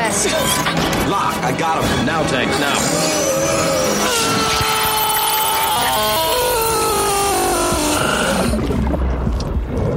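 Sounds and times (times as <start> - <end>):
speech: 0.2 - 4.2
harsh scream breaking into warbling digital modem-like tones: 2.6 - 8.6
low rumble: 7.2 - 9.9.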